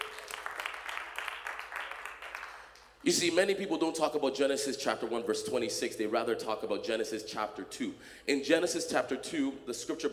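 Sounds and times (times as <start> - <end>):
audience clapping: 0.0 - 3.0
speech: 3.0 - 10.1.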